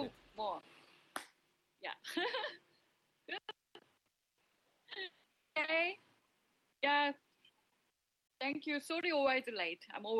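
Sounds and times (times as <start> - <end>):
speech: 0.1 - 0.9, 1.8 - 2.6, 3.3 - 3.6, 4.9 - 6.0, 6.8 - 7.2, 8.4 - 10.1
single sharp hand clap: 1.1 - 1.4.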